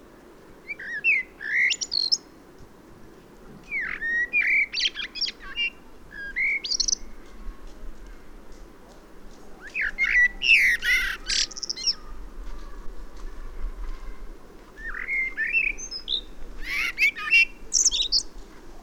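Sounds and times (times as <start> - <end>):
common blackbird Turdus merula singing: 0.6 - 2.3, 3.6 - 7.1, 9.6 - 12.2, 14.8 - 18.3.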